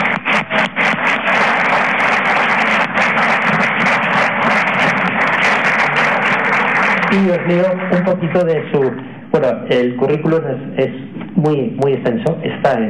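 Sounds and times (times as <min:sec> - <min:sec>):
audience applause: 0:00.0 - 0:09.0
speech: 0:07.1 - 0:12.8.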